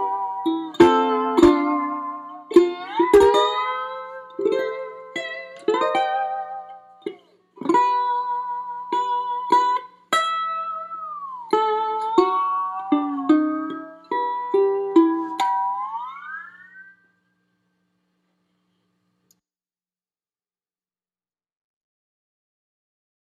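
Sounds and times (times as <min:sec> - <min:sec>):
white ukulele playing: 0:00.0 - 0:17.1.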